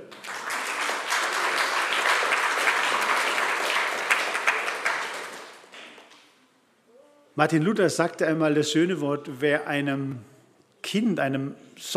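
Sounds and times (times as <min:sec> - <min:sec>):
audience applause: 0:00.0 - 0:06.0
speech: 0:07.4 - 0:10.3, 0:10.9 - 0:11.9.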